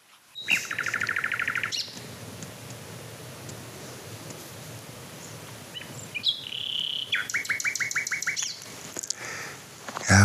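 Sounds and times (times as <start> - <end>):
soft hiss: 0.0 - 10.2
nightingale singing: 0.3 - 2.8, 5.0 - 8.7.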